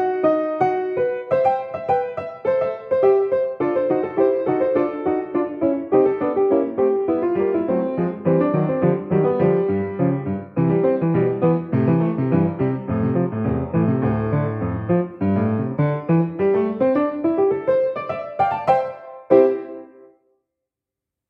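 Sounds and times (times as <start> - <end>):
piano: 0.0 - 20.3.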